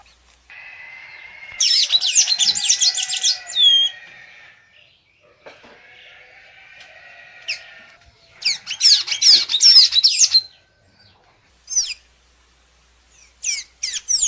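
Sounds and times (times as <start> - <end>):
blue dacnis singing high twittering and chips: 1.0 - 4.1, 7.5 - 12.1, 13.1 - 14.2.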